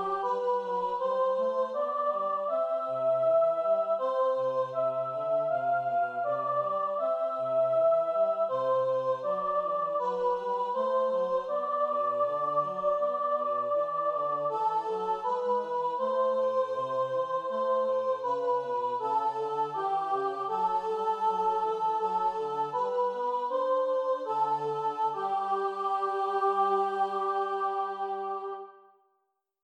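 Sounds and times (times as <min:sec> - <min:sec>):
choir singing soprano over bass: 0:00.0 - 0:28.9.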